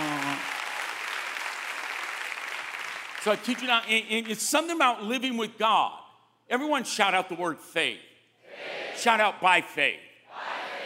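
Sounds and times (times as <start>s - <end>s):
audience clapping: 0.0s - 4.8s
speech: 3.2s - 8.1s, 9.0s - 10.1s.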